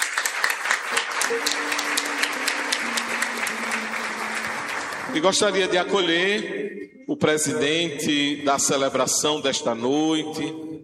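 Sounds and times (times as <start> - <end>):
crowd applauding: 0.0 - 6.0
speech: 1.3 - 1.7, 5.1 - 10.7.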